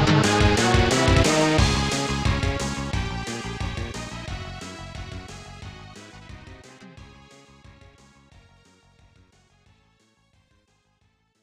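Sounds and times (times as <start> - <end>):
battle music: 0.0 - 7.2.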